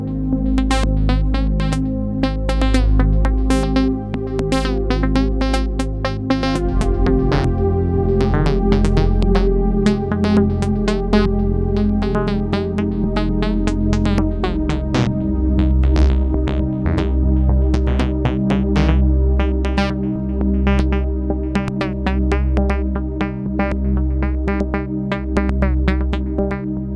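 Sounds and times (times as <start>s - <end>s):
synthesizer portamento sequence: 0.0s - 26.9s.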